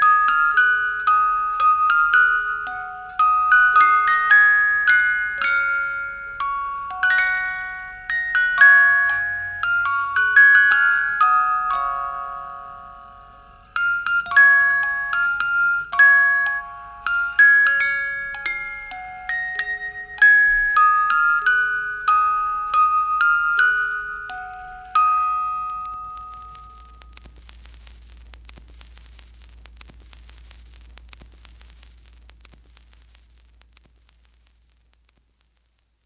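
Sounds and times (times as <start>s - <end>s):
music box: 0.0s - 27.2s.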